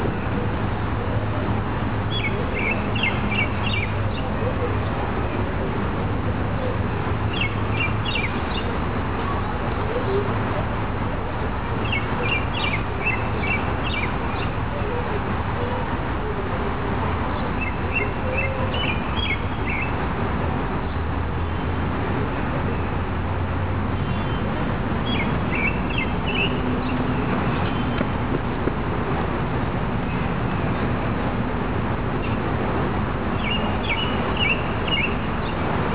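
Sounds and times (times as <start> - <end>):
rushing water: 0.0 - 35.9
robin singing: 2.1 - 4.3, 7.3 - 8.7, 11.8 - 14.6, 17.6 - 20.0, 25.0 - 28.1, 33.3 - 35.6.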